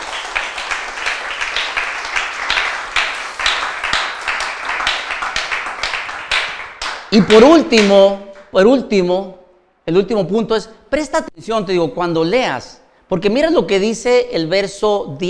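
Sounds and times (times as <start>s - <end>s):
audience applauding: 0.0s - 7.9s
speech: 7.1s - 15.2s.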